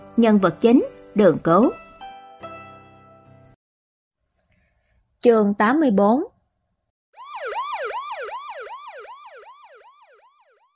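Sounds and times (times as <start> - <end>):
speech: 0.2 - 1.8, 5.2 - 6.3
police car siren yelping: 7.2 - 10.7.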